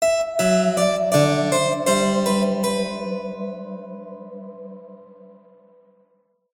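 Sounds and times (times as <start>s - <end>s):
bourree music cue: 0.0s - 5.1s.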